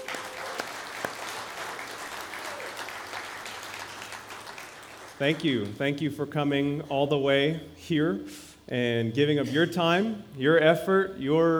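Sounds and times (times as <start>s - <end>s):
congregation at Kahului Baptist Church applauding: 0.0s - 5.8s
speech: 5.2s - 11.5s.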